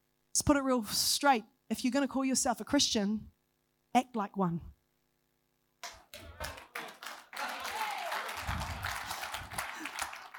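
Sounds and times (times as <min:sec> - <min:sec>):
speech: 0:00.4 - 0:03.3, 0:03.9 - 0:04.7
crowd applauding in a large room: 0:05.8 - 0:10.3.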